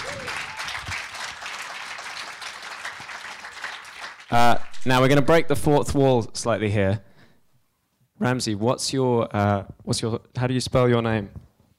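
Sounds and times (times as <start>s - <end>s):
audience applause: 0.0s - 4.6s
speech: 4.3s - 7.1s, 8.2s - 11.4s.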